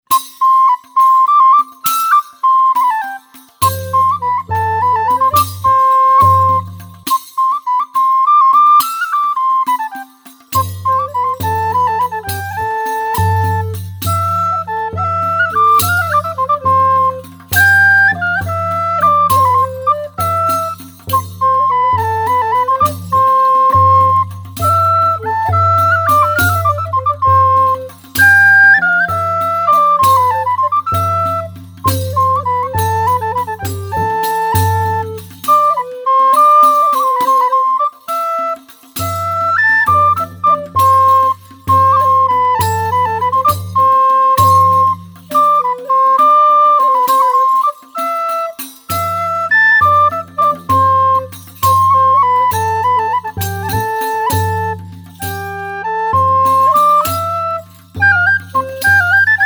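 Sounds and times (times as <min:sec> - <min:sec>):
medieval estampie dance music: 0:00.0 - 0:59.4.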